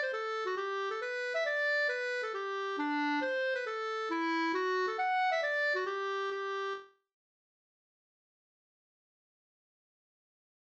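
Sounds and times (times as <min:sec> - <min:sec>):
mazurka: 0:00.0 - 0:06.8.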